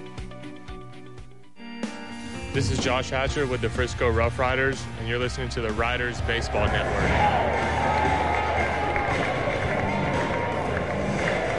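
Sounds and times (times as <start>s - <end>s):
speech: 2.6s - 8.2s
ballpark crowd cheering at baseball game: 6.3s - 11.5s.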